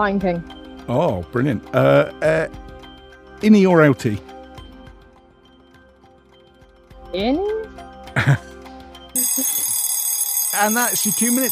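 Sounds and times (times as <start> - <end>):
speech: 0.0 - 2.6, 3.4 - 4.3, 7.1 - 7.6, 8.2 - 8.4, 10.6 - 11.5
quiz buzzer: 9.2 - 11.5.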